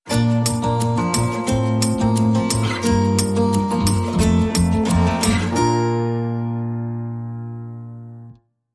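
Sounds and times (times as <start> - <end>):
acoustic underscore sting: 0.1 - 8.4.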